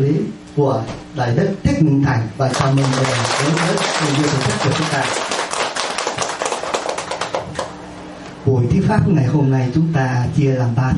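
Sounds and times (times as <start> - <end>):
speech: 0.0 - 5.3, 8.8 - 10.9
audience applause at a Buddhist dharma lecture: 2.5 - 7.8.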